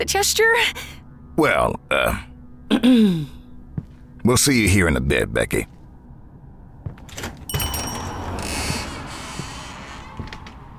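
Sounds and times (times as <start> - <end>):
speech: 0.0 - 3.4, 4.2 - 5.8
door creaking open with a strained whining hinge: 7.0 - 10.6.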